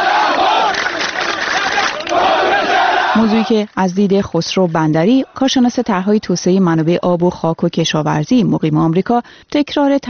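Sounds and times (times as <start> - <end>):
protest crowd chanting slogans: 0.0 - 3.6, 5.0 - 5.7
speech: 3.2 - 10.0.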